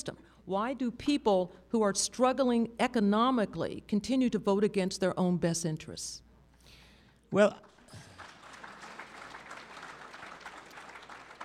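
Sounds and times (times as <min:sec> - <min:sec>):
speech: 0:00.0 - 0:06.2, 0:07.3 - 0:07.7
faint audience applause at a talk about politics and voting: 0:07.7 - 0:11.4.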